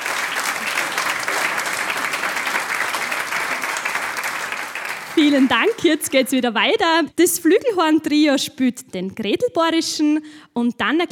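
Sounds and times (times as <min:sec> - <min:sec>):
audience applause: 0:00.0 - 0:06.1
speech: 0:05.2 - 0:11.0.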